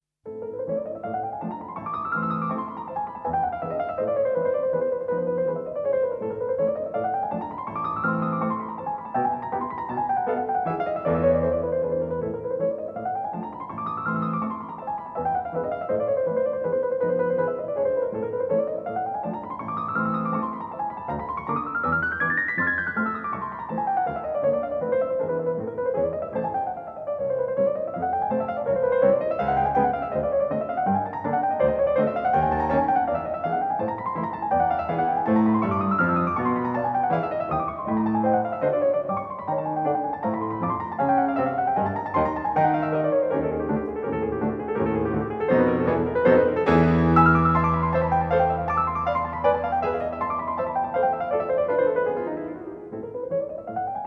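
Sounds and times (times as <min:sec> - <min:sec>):
piano piece in A minor: 0:00.0 - 0:54.0.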